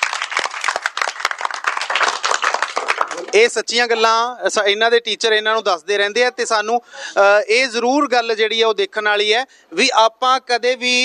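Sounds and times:
children clapping loudly in a school gathering: 0.0 - 3.5
speech: 3.2 - 11.0.

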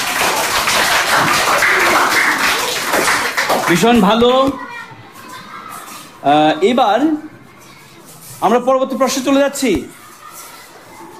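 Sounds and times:
group applauding during a children's quiz session: 0.0 - 4.1
speech: 3.7 - 4.7, 6.2 - 7.3, 8.4 - 10.0.

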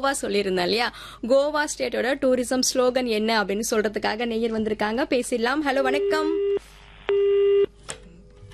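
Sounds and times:
speech: 0.0 - 7.3
steady telephone tone: 5.9 - 7.7.

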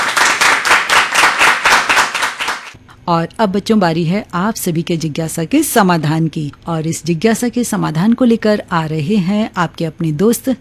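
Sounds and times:
clapping: 0.0 - 2.8
speech: 3.1 - 10.5.

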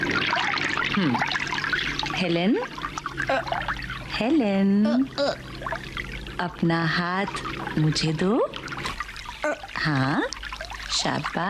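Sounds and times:
water trickling from a tap: 0.0 - 11.4
speech: 1.0 - 1.4, 2.2 - 8.6, 9.4 - 10.3, 10.9 - 11.4.

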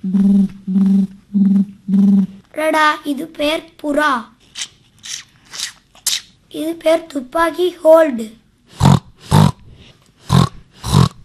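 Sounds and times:
speech: 0.0 - 1.1, 2.7 - 4.4, 6.5 - 8.4
pig grunting: 8.8 - 9.6, 10.3 - 11.2.

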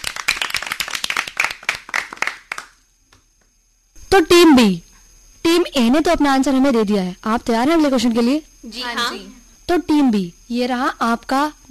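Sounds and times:
hand clapping from several people: 0.0 - 3.5
speech: 4.1 - 4.9, 5.5 - 11.6.

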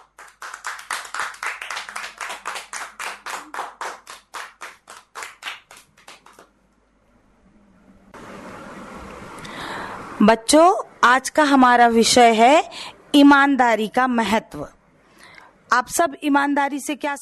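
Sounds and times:
children clapping loudly: 0.0 - 6.6
speech: 10.2 - 14.8, 15.7 - 17.2.

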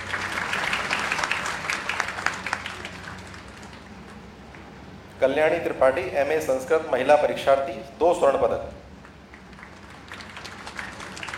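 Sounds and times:
audience applause at a university degree ceremony: 0.0 - 4.2, 9.3 - 11.3
speech: 5.2 - 8.8.

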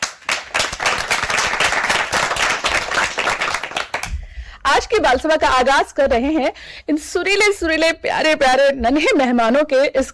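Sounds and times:
audience applause welcoming children: 0.0 - 4.1
speech: 5.0 - 10.1.

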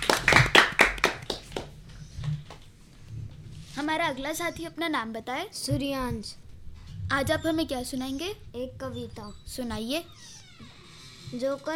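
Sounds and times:
children clapping hands: 0.0 - 1.8
speech: 3.9 - 6.4, 7.1 - 10.4, 11.3 - 11.7.

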